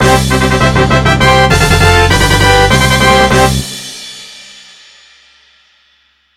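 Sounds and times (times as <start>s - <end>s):
fanfare: 0.0s - 4.1s.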